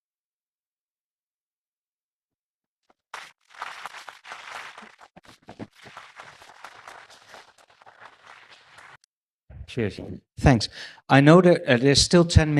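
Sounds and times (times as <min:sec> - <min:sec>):
audience applause: 0:03.2 - 0:09.0
speech: 0:09.8 - 0:12.5.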